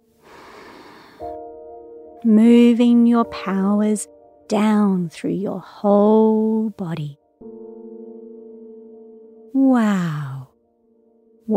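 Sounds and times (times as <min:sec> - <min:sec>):
deep breath in and out during a guided breathing exercise: 0:00.2 - 0:01.4
speech: 0:02.2 - 0:07.2, 0:09.5 - 0:10.3.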